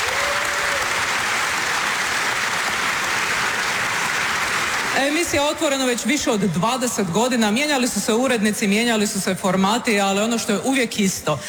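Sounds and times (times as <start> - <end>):
studio audience applauding: 0.0 - 6.0
speech: 5.0 - 11.4.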